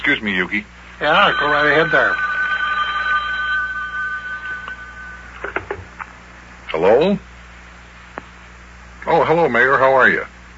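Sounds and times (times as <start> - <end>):
speech: 0.1 - 2.2, 6.7 - 7.3, 9.0 - 10.3
telephone ringing: 1.0 - 6.0.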